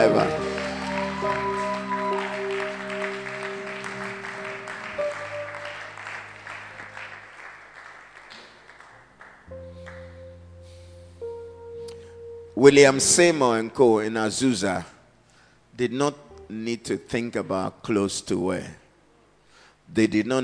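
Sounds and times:
speech: 0.0s - 0.5s, 12.6s - 14.9s, 15.8s - 18.8s, 19.9s - 20.4s
sustained musical chords: 0.0s - 7.3s, 9.5s - 14.2s
audience clapping: 0.0s - 10.2s.

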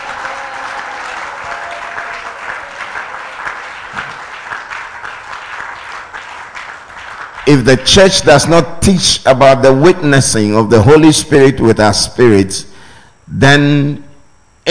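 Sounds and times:
scattered audience shouts and cheers: 0.0s - 4.4s
audience clapping loudly: 0.0s - 7.8s
speech: 7.5s - 12.7s, 13.3s - 14.0s.

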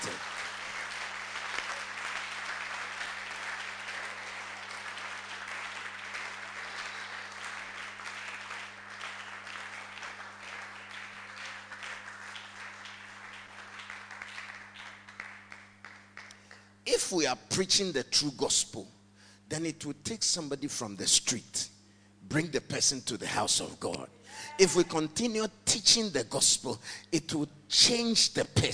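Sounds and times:
audience clapping: 0.0s - 16.8s
speech: 16.9s - 21.7s, 22.3s - 28.7s.

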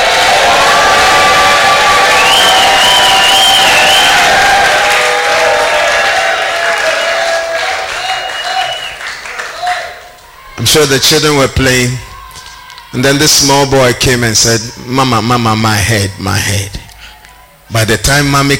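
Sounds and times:
audience clapping: 0.0s - 10.4s
audience shouting: 0.0s - 13.6s
speech: 10.7s - 12.1s, 12.9s - 16.8s, 17.7s - 18.5s.

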